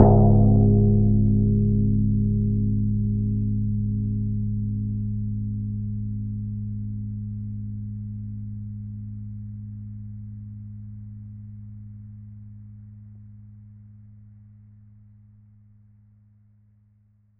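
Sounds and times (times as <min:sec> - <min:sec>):
gong: 0:00.0 - 0:05.6.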